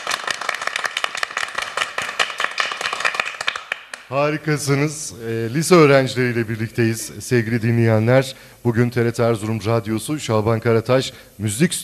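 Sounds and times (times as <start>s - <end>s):
group applause: 0.0s - 4.1s
speech: 4.1s - 11.8s.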